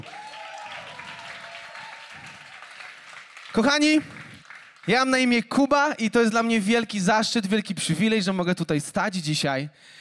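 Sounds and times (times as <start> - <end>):
audience applause: 0.0 - 5.3
speech: 3.6 - 4.2, 4.8 - 9.9.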